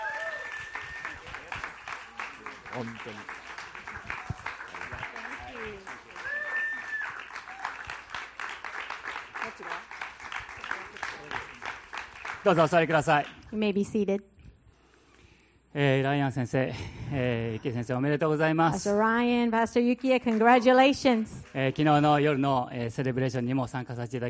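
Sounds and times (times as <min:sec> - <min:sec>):
audience applauding: 0:00.0 - 0:13.4
speech: 0:02.8 - 0:03.4, 0:05.5 - 0:06.2, 0:09.5 - 0:10.0, 0:12.4 - 0:14.3, 0:15.7 - 0:24.2.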